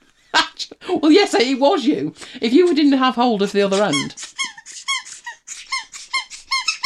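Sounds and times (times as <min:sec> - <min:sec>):
speech: 0:00.9 - 0:04.2
squeaky rubber chicken dog toy squeaking: 0:03.7 - 0:06.8.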